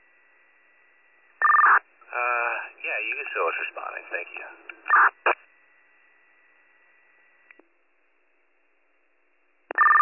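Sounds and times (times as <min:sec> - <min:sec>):
faint radio hiss: 0:00.0 - 0:10.0
radio dispatch paging tone: 0:01.4 - 0:01.8, 0:04.9 - 0:05.4, 0:09.7 - 0:10.0
speech: 0:03.3 - 0:05.2.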